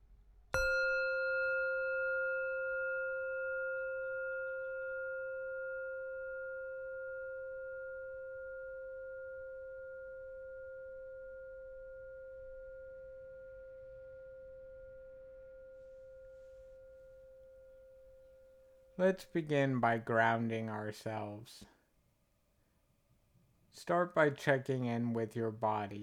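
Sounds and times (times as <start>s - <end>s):
meditation bell ringing: 0.6s - 19.0s
speech: 19.0s - 21.7s, 23.9s - 26.0s.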